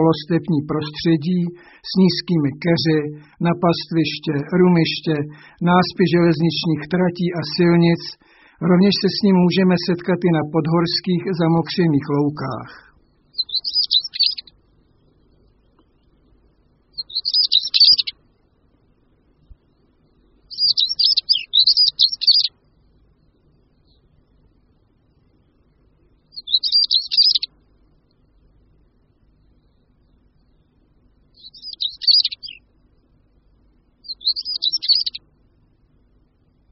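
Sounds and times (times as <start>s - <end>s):
speech: 0.0s - 12.9s
European stonechat scratchy song: 0.0s - 14.6s, 16.9s - 18.2s, 19.7s - 22.6s, 26.3s - 27.5s, 31.4s - 32.7s, 34.0s - 35.3s.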